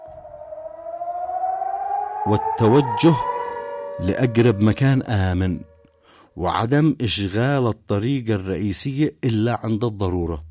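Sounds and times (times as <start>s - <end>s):
civil defence warning sirens in Bahrain: 0.0s - 6.0s
speech: 2.2s - 3.3s, 4.0s - 5.7s, 6.4s - 10.4s.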